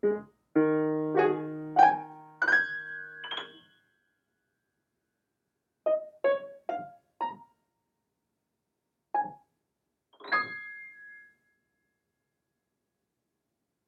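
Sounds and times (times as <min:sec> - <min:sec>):
piano improvisation in Db major: 0:00.0 - 0:03.6, 0:05.9 - 0:07.5.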